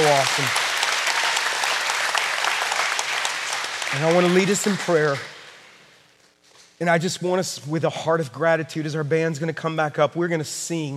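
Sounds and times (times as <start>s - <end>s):
audience clapping hands: 0.0s - 5.8s
speech: 0.2s - 0.7s, 3.9s - 5.3s, 6.8s - 10.9s.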